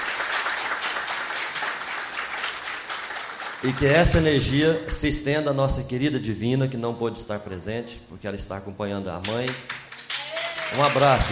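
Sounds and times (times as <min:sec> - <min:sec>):
audience applause: 0:00.0 - 0:04.4, 0:09.5 - 0:11.3
speech: 0:03.6 - 0:09.8, 0:10.7 - 0:11.3.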